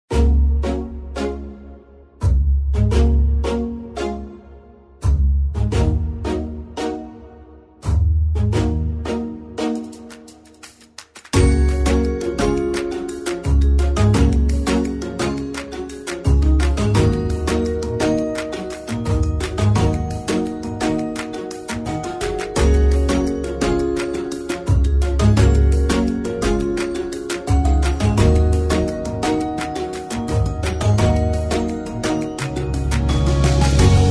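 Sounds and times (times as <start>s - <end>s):
corporate music: 0.1s - 34.0s.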